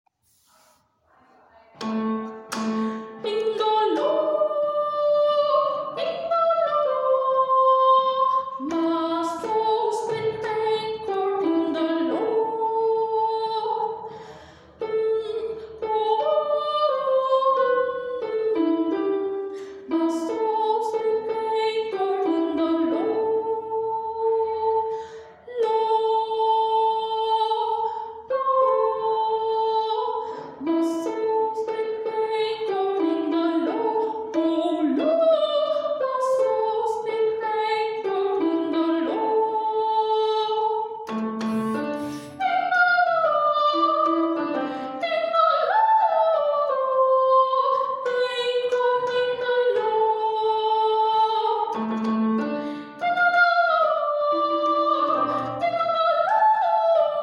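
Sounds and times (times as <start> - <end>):
soprano singing: 1.8 - 57.2.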